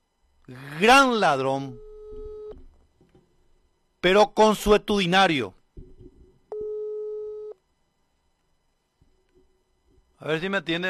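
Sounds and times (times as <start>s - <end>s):
speech: 0.5s - 1.8s, 4.0s - 5.6s, 10.2s - 10.8s
telephone line tone during outgoing call: 1.7s - 2.6s, 6.5s - 7.6s.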